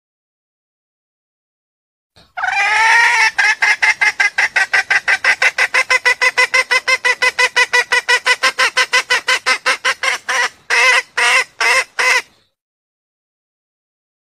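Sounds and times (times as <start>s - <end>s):
junglefowl mating call of harsh nasal clucks: 2.2s - 12.4s.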